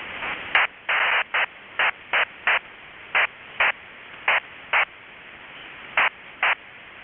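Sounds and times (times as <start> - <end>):
SECOM-H slow frequency hopping QPSK serial tone waveform: 0.5 - 2.6, 3.2 - 4.9, 6.0 - 6.6.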